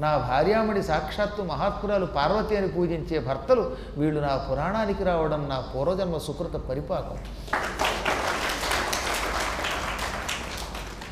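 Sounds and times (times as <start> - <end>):
speech: 0.0 - 7.8
audience clapping at a devotional discourse: 7.2 - 11.1.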